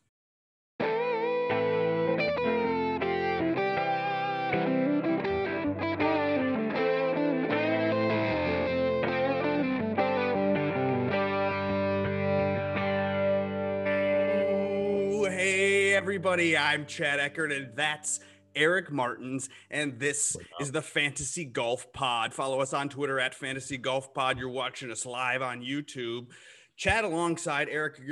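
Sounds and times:
intro music: 0:01.5 - 0:18.0
speech: 0:16.1 - 0:28.1.

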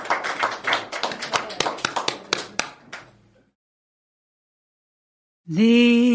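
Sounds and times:
audience applause: 0:00.0 - 0:03.2
speech: 0:05.5 - 0:06.0.

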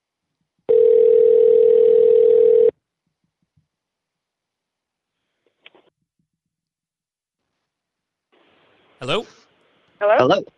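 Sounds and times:
telephone ring tone on outgoing call: 0:00.7 - 0:02.7
speech: 0:09.1 - 0:09.3, 0:10.0 - 0:10.5.

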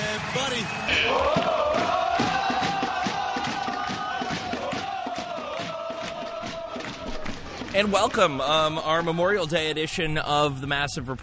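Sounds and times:
Crew supporters roaring and chanting on the Nord deck: 0:00.0 - 0:10.4
speech: 0:00.4 - 0:01.4, 0:07.8 - 0:11.2.

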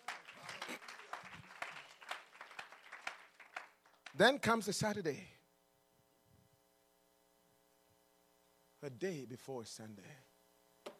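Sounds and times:
audience clapping: 0:00.0 - 0:04.4
speech: 0:04.2 - 0:05.4, 0:08.8 - 0:10.3.

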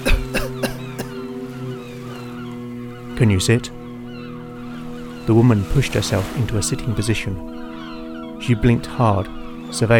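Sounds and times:
woman coughing: 0:00.0 - 0:01.1
speech: 0:03.2 - 0:03.8, 0:05.3 - 0:07.7, 0:08.4 - 0:09.9.

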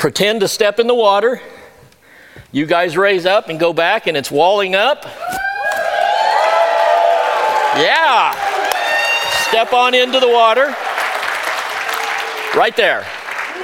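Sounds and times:
speech: 0:00.0 - 0:01.6, 0:02.5 - 0:05.4, 0:07.7 - 0:08.4, 0:09.5 - 0:10.9, 0:12.5 - 0:13.2
audience whooping, hollering and shouting: 0:05.2 - 0:12.6
audience clapping: 0:05.8 - 0:13.6.

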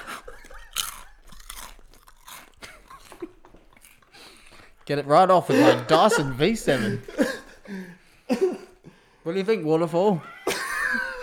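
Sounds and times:
laughter: 0:00.0 - 0:01.4, 0:02.6 - 0:08.8, 0:10.0 - 0:11.2
chips being chewed: 0:00.5 - 0:04.1
speech: 0:04.9 - 0:07.8, 0:09.3 - 0:10.3.

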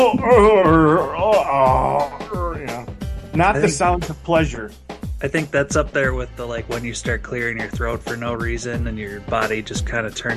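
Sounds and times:
speech: 0:00.0 - 0:02.1, 0:03.4 - 0:10.3
voice imitating groan of getting out of a car: 0:00.0 - 0:02.9.

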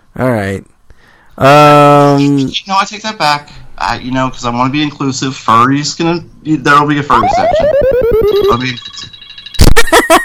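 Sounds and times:
speech: 0:00.2 - 0:00.8, 0:01.4 - 0:09.2
phone ringtone: 0:07.2 - 0:09.6.

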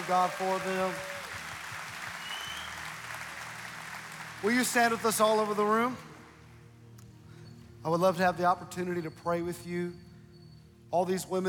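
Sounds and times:
audience applauding: 0:00.0 - 0:06.4
speech: 0:00.1 - 0:01.1, 0:04.4 - 0:06.1, 0:07.8 - 0:10.0, 0:10.9 - 0:11.4.

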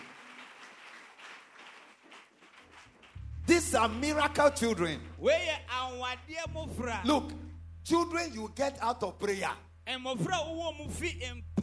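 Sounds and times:
audience clapping: 0:00.0 - 0:05.0
speech: 0:03.5 - 0:11.6.

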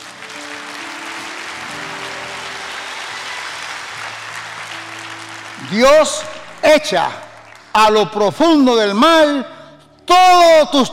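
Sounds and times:
audience applauding: 0:00.0 - 0:08.7
speech: 0:05.7 - 0:07.2, 0:07.8 - 0:09.5, 0:10.1 - 0:10.9.

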